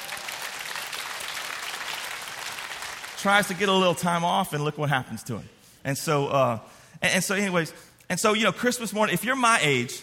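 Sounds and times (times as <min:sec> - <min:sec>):
audience clapping: 0:00.0 - 0:03.8
speech: 0:03.2 - 0:10.0.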